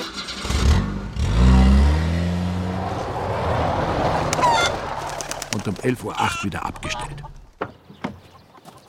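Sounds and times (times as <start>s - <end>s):
car engine starting and revving: 0.0s - 5.6s
speech: 5.6s - 7.4s.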